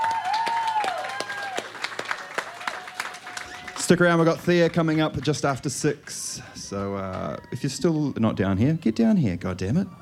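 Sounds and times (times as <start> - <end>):
audience applause: 0.0 - 6.2
speech: 3.9 - 9.9.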